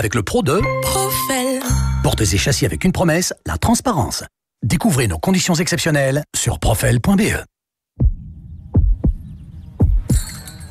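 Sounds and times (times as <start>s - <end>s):
speech: 0.0s - 8.1s
deep thudding heartbeat: 8.0s - 10.3s.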